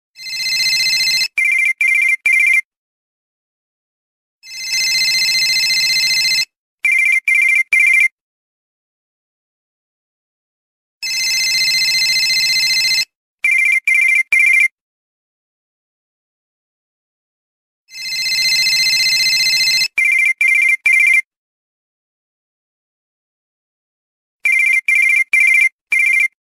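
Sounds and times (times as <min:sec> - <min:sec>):
office phone ringtone: 0:00.2 - 0:02.6, 0:04.4 - 0:08.1, 0:11.0 - 0:14.7, 0:17.9 - 0:21.3, 0:24.4 - 0:26.4.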